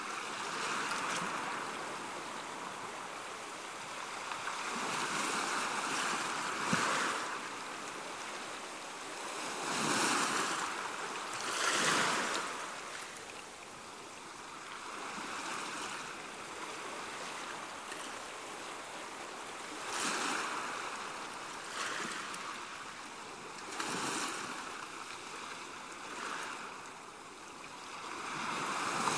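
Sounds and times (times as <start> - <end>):
relaxing ocean waves: 0.0 - 29.1.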